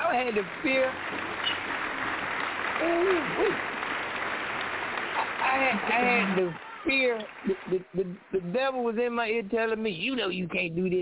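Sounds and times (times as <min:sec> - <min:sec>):
applause: 0:00.0 - 0:08.3
speech: 0:00.1 - 0:01.3, 0:02.8 - 0:03.8, 0:05.5 - 0:11.0.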